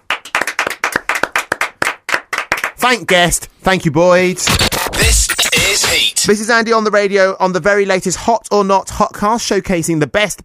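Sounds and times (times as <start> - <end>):
hands clapping: 0.0 - 3.3
speech: 2.8 - 10.4.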